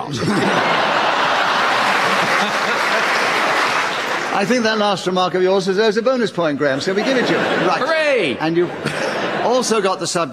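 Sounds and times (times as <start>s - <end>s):
laughter: 0.0s - 4.1s, 6.6s - 10.3s
speech: 0.1s - 0.8s, 4.4s - 10.3s
round of applause: 0.8s - 4.8s.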